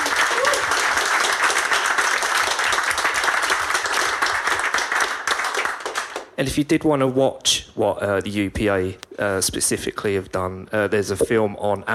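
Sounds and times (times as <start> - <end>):
audience applause: 0.0 - 6.3
speech: 6.4 - 11.9.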